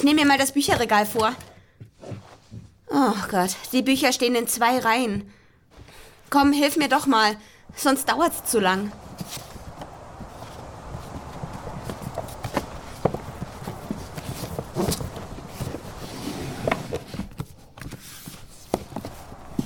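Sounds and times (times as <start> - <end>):
speech: 0.0 - 1.5, 2.9 - 5.4, 6.3 - 9.5
footsteps climbing a flight of stairs inside a house: 0.6 - 2.9, 7.7 - 19.6.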